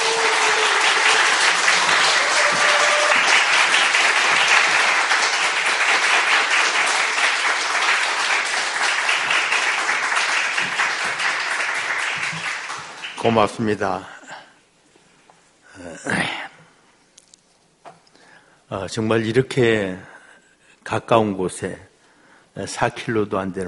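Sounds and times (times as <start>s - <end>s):
audience applause: 0.0s - 13.4s
speech: 13.2s - 14.2s, 18.7s - 20.1s, 20.9s - 21.9s, 22.6s - 23.6s.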